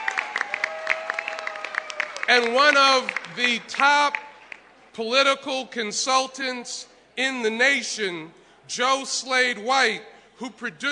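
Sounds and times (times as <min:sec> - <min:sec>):
audience applause: 0:00.0 - 0:04.6
speech: 0:02.3 - 0:04.2, 0:05.0 - 0:10.8.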